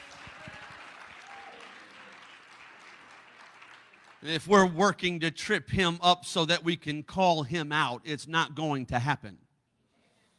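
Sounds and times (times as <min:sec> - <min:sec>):
audience clapping hands: 0:00.0 - 0:04.9
speech: 0:04.2 - 0:09.4.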